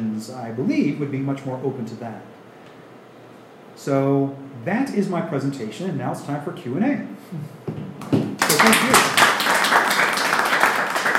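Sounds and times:
speech: 0.0 - 2.4, 3.8 - 9.0
audience applause: 8.4 - 11.1.

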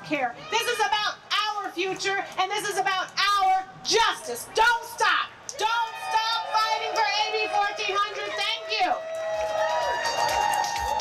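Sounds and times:
speech: 0.1 - 1.2, 1.8 - 5.9
crowd applauding and cheering: 5.5 - 10.9.

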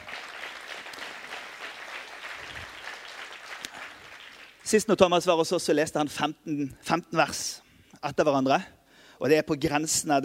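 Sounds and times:
audience applause: 0.0 - 4.7
speech: 4.7 - 10.2.

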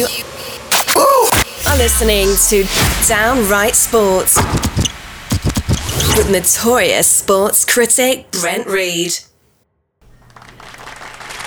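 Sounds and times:
speech: 0.0 - 0.4, 1.0 - 4.7, 6.2 - 9.3
canned applause sound effect: 10.0 - 11.4.

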